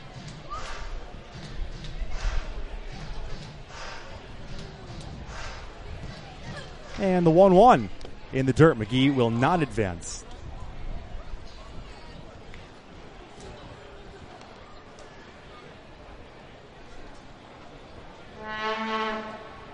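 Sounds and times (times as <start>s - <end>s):
faint murmuring voices: 0.0s - 19.7s
noise: 0.0s - 19.7s
speech: 7.0s - 10.1s
truck horn on a bridge: 18.4s - 19.7s.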